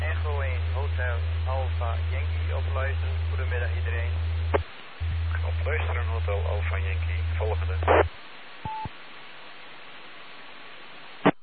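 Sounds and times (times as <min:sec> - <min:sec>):
radio squelch noise: 0:00.1 - 0:08.9, 0:11.2 - 0:11.4
speech: 0:06.2 - 0:08.0.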